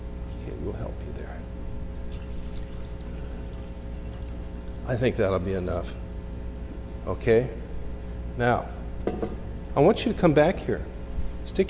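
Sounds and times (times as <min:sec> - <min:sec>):
water pouring into a container: 0:02.1 - 0:04.9
speech: 0:04.9 - 0:06.0, 0:07.1 - 0:07.6, 0:08.4 - 0:11.6.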